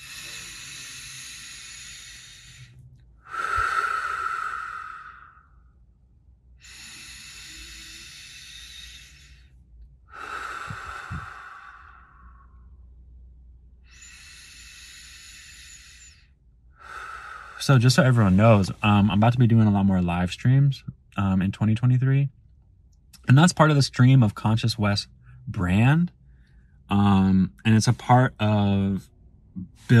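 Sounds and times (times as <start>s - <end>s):
deep breathing: 0.0s - 19.2s, 25.0s - 29.9s
speech: 17.6s - 22.4s, 23.3s - 26.2s, 26.9s - 29.9s.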